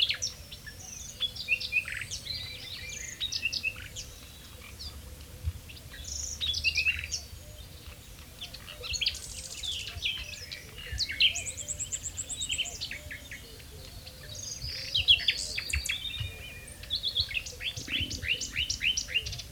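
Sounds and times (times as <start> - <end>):
common nightingale Luscinia megarhynchos singing varied phrases: 0.0 - 19.5.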